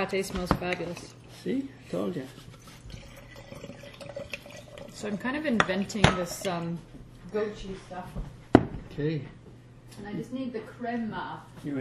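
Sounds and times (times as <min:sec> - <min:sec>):
speech: 0:00.0 - 0:02.5, 0:05.0 - 0:08.4, 0:09.0 - 0:11.8
drink pouring into glasses: 0:01.9 - 0:06.8.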